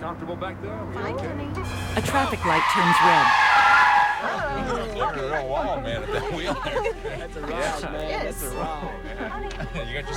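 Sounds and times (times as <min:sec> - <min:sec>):
car speeding off: 0:00.0 - 0:06.1
speech: 0:00.1 - 0:03.6, 0:04.2 - 0:10.1
laughter: 0:04.1 - 0:10.1.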